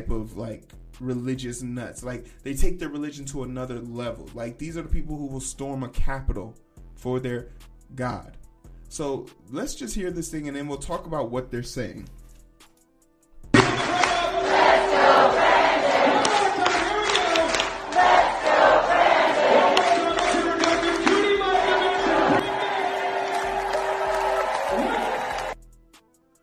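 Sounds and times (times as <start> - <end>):
speech: 0.0 - 12.2
crowd chanting at a rally: 13.6 - 25.6.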